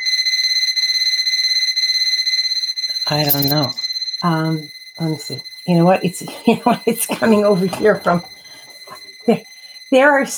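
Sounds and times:
electronic beeping in the room: 2.8 - 10.0
speech: 3.1 - 8.4, 9.3 - 10.3.

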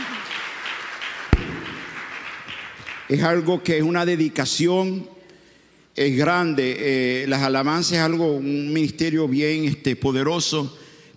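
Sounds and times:
audience applause: 0.0 - 3.1
sharp loud clap or knock: 1.4 - 2.0
speech: 3.1 - 5.2, 6.0 - 11.1.

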